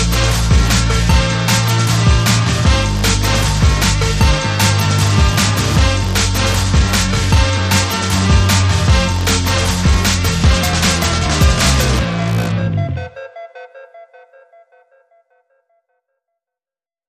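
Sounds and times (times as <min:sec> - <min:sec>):
brass mix without lead: 0:00.0 - 0:13.2.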